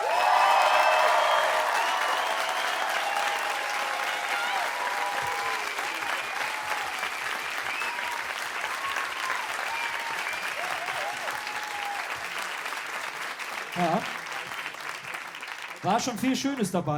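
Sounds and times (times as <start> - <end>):
faint cheers and voices: 0.0 - 12.4
audience applause: 0.0 - 16.8
speech: 15.9 - 16.9.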